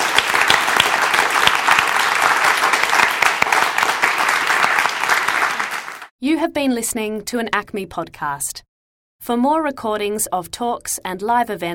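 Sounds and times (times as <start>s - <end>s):
audience applause: 0.0s - 6.1s
speech: 6.3s - 11.7s.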